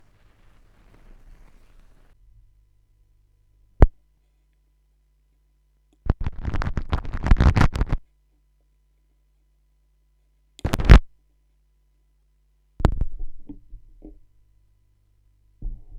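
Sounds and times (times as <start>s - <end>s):
vinyl record noise: 0.0s - 2.2s, 6.1s - 8.0s, 10.6s - 11.0s.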